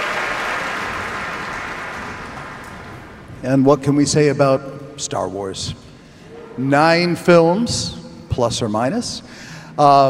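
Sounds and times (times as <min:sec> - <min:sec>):
concert audience applause for orchestra at the Koussevitzky Music Shed: 0:00.0 - 0:03.3
speech: 0:03.4 - 0:05.9, 0:06.6 - 0:10.0.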